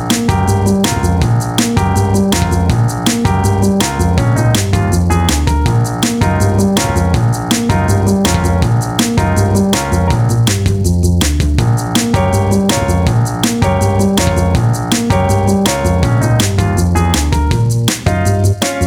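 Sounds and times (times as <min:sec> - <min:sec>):
spy jazz music: 0:00.0 - 0:18.8.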